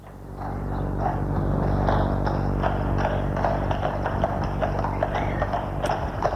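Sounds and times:
fiacre horse's hooves clip-clopping: 0.0s - 6.3s
low rumble of horse-drawn cab: 0.0s - 6.3s.

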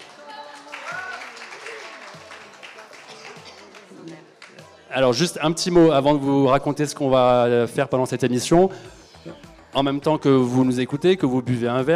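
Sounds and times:
cheers: 0.0s - 2.7s
audience applauding: 0.0s - 4.8s
speech: 4.9s - 9.0s, 9.8s - 11.9s.

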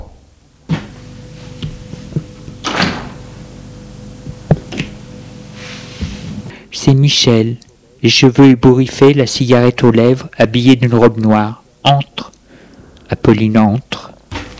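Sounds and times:
steady low hum: 0.3s - 6.6s
door sound: 2.1s - 3.2s
speech: 6.8s - 12.3s, 13.1s - 14.1s.

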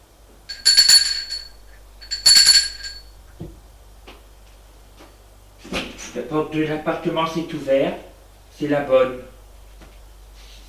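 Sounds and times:
apartment doorbell ringing: 0.5s - 3.1s
speech: 6.2s - 9.3s.

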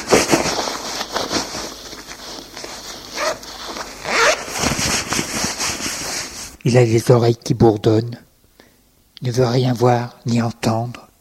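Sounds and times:
clothes zipper while hastily getting dressed: 0.0s - 6.6s
rustling fabric: 0.0s - 6.6s
speech: 6.6s - 8.3s, 9.2s - 11.0s.

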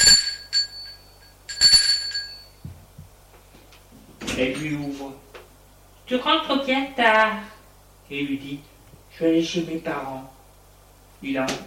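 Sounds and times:
doorbell ringing: 0.0s - 2.6s
speech: 4.4s - 5.2s, 6.1s - 7.5s, 8.1s - 10.4s, 11.2s - 11.6s.

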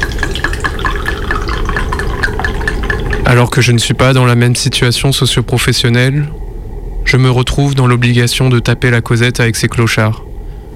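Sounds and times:
drink being poured into a glass: 0.0s - 3.7s
speech: 3.3s - 6.4s, 7.1s - 10.3s.

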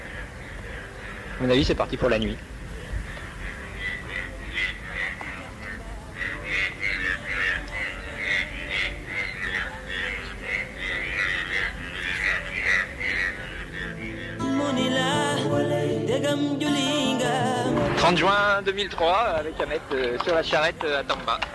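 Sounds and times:
toads croaking at night: 0.0s - 21.5s
speech: 1.4s - 2.5s, 18.1s - 21.5s.

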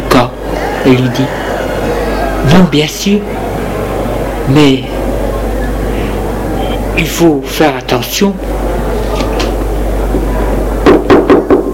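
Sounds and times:
low hum: 0.0s - 11.7s
speech: 0.2s - 1.5s, 2.4s - 3.4s, 4.5s - 5.0s, 7.0s - 8.6s
knocking on a door: 10.8s - 11.7s.

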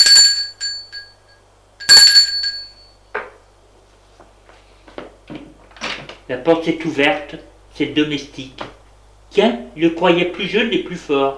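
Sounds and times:
doorbell ringing: 0.0s - 3.0s
speech: 6.3s - 8.7s, 9.3s - 11.3s.

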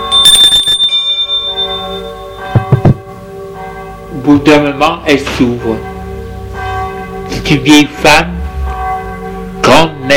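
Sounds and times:
doorbell ringing: 0.0s - 3.1s
speech: 4.2s - 5.9s, 7.5s - 8.4s.

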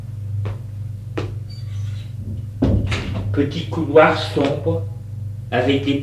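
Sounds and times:
steady low hum: 0.0s - 6.0s
door opening clunks: 2.2s - 3.4s
speech: 3.4s - 6.0s.

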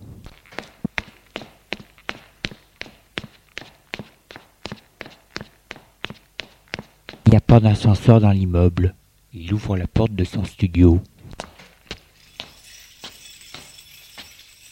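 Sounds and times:
footsteps climbing five floors of stairs: 0.2s - 7.3s, 11.3s - 14.7s
speech: 7.4s - 11.1s.

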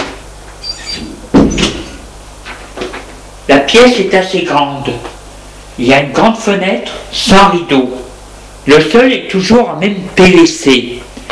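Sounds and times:
door opening: 0.6s - 2.0s
speech: 3.5s - 5.1s, 5.8s - 8.0s, 8.7s - 11.0s.

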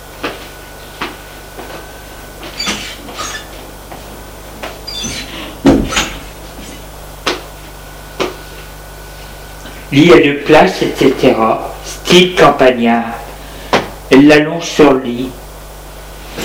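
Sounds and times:
bedroom door opening: 2.4s - 6.9s
speech: 9.9s - 13.2s, 14.1s - 15.4s.

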